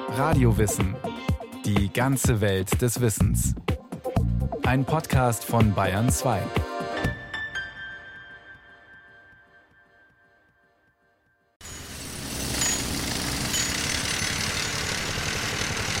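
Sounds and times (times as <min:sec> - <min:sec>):
speech: 0:00.1 - 0:03.8, 0:04.4 - 0:07.1
drilling: 0:11.6 - 0:15.9.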